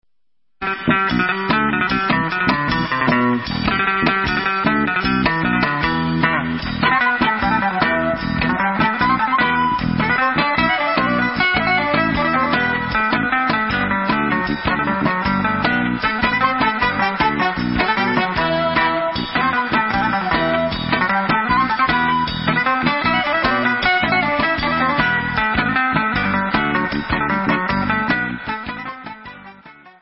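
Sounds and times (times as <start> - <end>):
instrumental music: 0.6 - 29.9.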